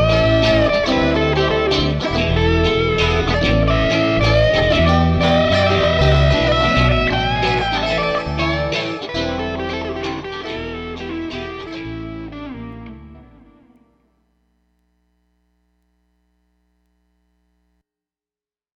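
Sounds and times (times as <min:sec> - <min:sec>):
guitar ballad: 0:00.0 - 0:14.2.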